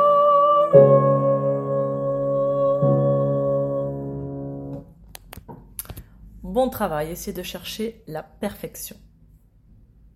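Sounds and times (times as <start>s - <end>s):
soprano singing: 0.0s - 4.8s.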